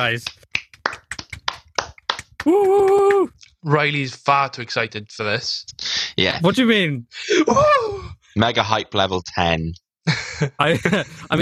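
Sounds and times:
speech: 0:00.0 - 0:00.4, 0:02.4 - 0:11.3
people clapping: 0:00.0 - 0:03.3
laughter: 0:10.1 - 0:11.3.

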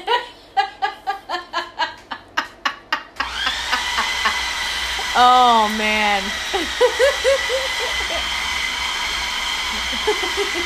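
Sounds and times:
person laughing: 0:00.0 - 0:05.1, 0:06.5 - 0:08.4, 0:09.7 - 0:10.6
blender blending food during a taste test: 0:03.2 - 0:10.6
speech: 0:05.2 - 0:08.4, 0:09.7 - 0:10.6.

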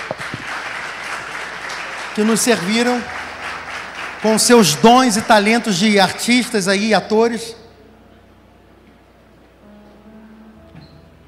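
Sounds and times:
audience applause: 0:00.0 - 0:06.7
speech: 0:02.2 - 0:03.2, 0:04.2 - 0:07.6.

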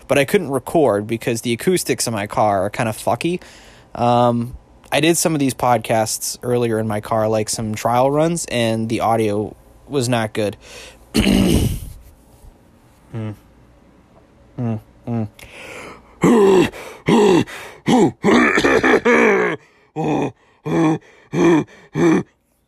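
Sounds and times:
speech: 0:00.1 - 0:11.8, 0:13.1 - 0:13.4, 0:14.6 - 0:22.3
person coughing and clearing throat after eating: 0:11.1 - 0:12.0, 0:16.2 - 0:22.3
grunting hums: 0:13.1 - 0:13.5, 0:14.5 - 0:15.5, 0:16.2 - 0:22.3.

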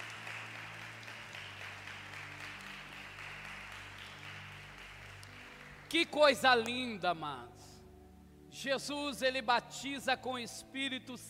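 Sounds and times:
audience applause: 0:00.0 - 0:06.1
speech: 0:05.9 - 0:07.7, 0:08.6 - 0:11.2.

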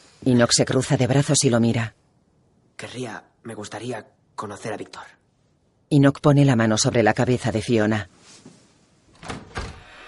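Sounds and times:
faint hiss: 0:00.0 - 0:10.0
speech: 0:00.2 - 0:02.0, 0:02.8 - 0:05.2, 0:05.9 - 0:08.6
door opening with latch and thump: 0:09.1 - 0:10.0.

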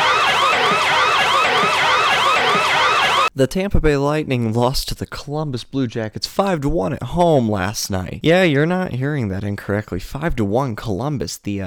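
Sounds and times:
loud red alert emergency siren wailing: 0:00.0 - 0:03.3
speech: 0:03.4 - 0:11.6.

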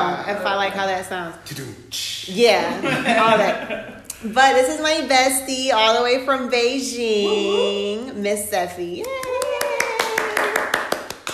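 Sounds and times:
speech: 0:00.2 - 0:09.4
laughter: 0:02.6 - 0:04.1
hand claps: 0:08.9 - 0:11.3.

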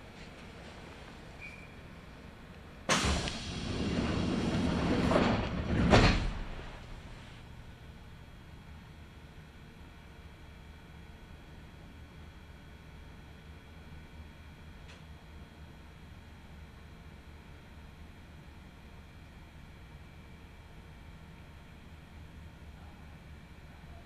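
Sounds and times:
Kintetsu Nagoya Line local train running: 0:02.2 - 0:08.2.

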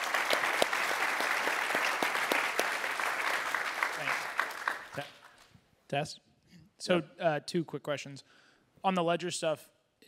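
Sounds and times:
audience applause: 0:00.0 - 0:05.5
speech: 0:05.9 - 0:10.0.

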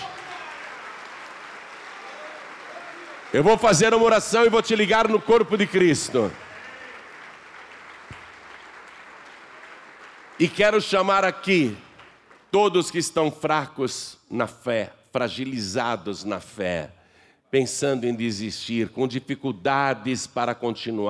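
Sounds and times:
audience applauding: 0:00.0 - 0:12.8
speech: 0:03.3 - 0:06.4, 0:10.4 - 0:11.8, 0:12.5 - 0:21.0.

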